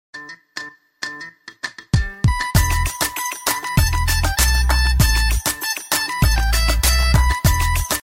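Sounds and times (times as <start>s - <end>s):
phone ringtone: 2.3s - 8.0s.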